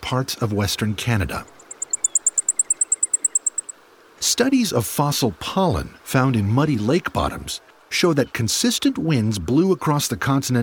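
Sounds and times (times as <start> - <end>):
speech: 0.1 - 1.6, 4.3 - 10.6
Blackpoll Warbler song of rapid ticking notes: 1.4 - 3.8.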